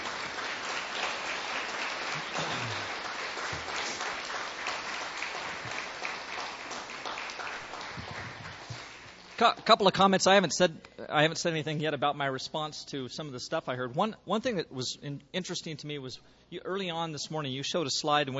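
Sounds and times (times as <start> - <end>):
audience applause: 0.0 - 9.4
speech: 9.4 - 18.3.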